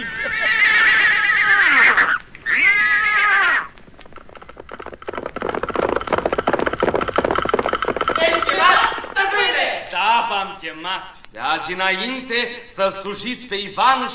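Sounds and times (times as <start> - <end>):
stallions neighing: 0.0 - 9.7
steady rough clattering noise: 3.7 - 9.9
speech: 10.8 - 14.1.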